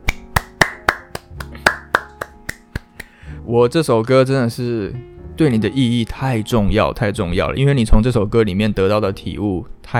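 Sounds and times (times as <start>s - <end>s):
crisp evenly spaced hand claps: 0.0s - 3.2s
speech: 3.5s - 9.9s.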